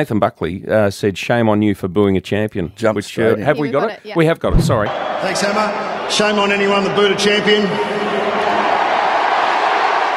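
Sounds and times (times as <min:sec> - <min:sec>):
speech: 0:00.0 - 0:08.2
spectators cheering at an Australian football event: 0:04.8 - 0:10.1.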